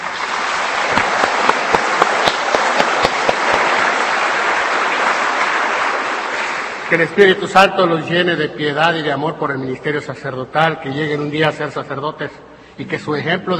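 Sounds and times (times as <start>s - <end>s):
audience applause: 0.0s - 7.2s
speech: 6.9s - 13.5s.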